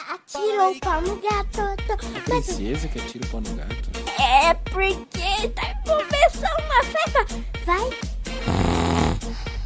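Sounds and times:
speech: 0.4s - 8.6s
raspy snoring with breathy snorts: 8.4s - 9.6s.

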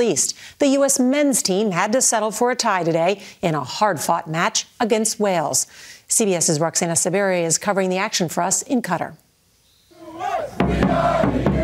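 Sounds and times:
speech: 0.0s - 9.2s
American soccer fans cheering in Doha at the World Cup: 10.0s - 11.6s.

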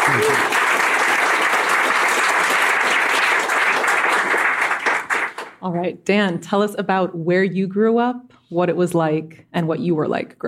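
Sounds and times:
audience applause: 0.0s - 5.6s
speech: 0.1s - 0.6s, 5.6s - 10.4s.

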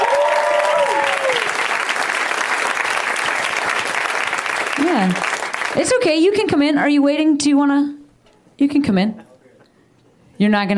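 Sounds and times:
high tonal cheer or whoop: 0.0s - 5.8s
audience applauding comedians: 0.0s - 6.1s
speech: 5.0s - 8.0s, 8.6s - 9.3s, 10.4s - 10.7s.

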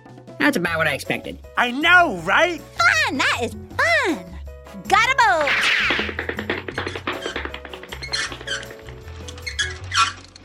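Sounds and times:
speech: 0.4s - 5.7s
tapping: 5.1s - 9.8s
rubber chicken squeaking: 5.4s - 10.4s.

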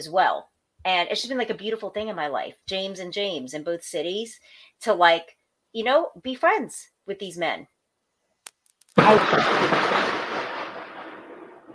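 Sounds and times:
speech: 0.0s - 7.7s, 9.0s - 10.0s
thunder: 9.0s - 11.7s.

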